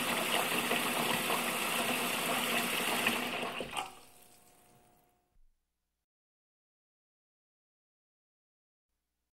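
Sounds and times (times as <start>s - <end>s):
water filling a sink: 0.0s - 5.0s.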